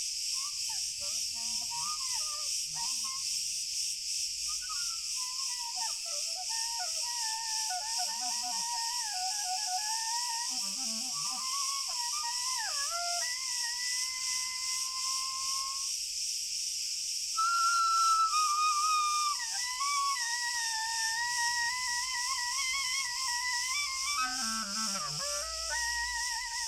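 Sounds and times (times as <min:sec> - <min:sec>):
cricket chorus: 0:00.0 - 0:26.6.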